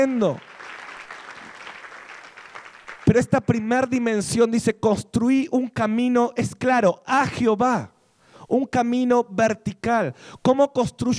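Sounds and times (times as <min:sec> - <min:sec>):
speech: 0:00.0 - 0:00.5, 0:03.1 - 0:11.1
audience applause: 0:00.0 - 0:03.2.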